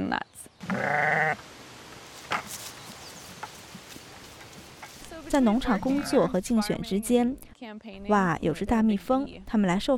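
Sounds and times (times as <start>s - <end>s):
speech: 0.1s - 1.5s, 5.3s - 9.9s
sheep bleating: 0.6s - 1.4s, 5.8s - 6.3s.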